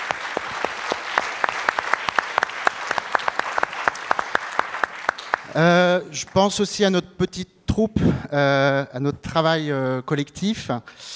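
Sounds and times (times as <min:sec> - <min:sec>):
audience clapping: 0:00.0 - 0:06.7
speech: 0:05.5 - 0:11.1.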